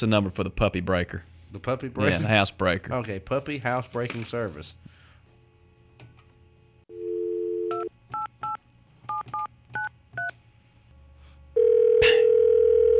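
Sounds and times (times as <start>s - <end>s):
speech: 0.0s - 5.0s
dial tone: 6.9s - 7.9s, 11.6s - 12.9s.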